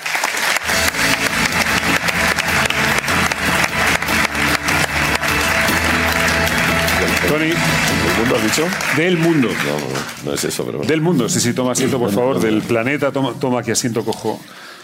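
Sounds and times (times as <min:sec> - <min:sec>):
audience applause: 0:00.0 - 0:10.8
speech: 0:07.4 - 0:14.7.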